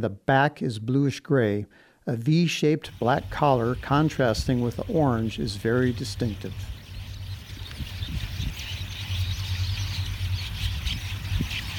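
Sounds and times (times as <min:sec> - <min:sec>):
speech: 0:00.0 - 0:06.8
murmuration of many flocking birds squeaking and chattering: 0:02.9 - 0:11.7.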